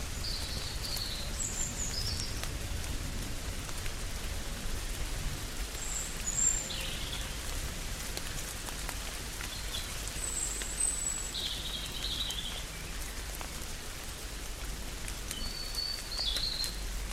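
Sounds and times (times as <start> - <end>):
rainstorm in a chestnut grove: 0.0 - 17.1.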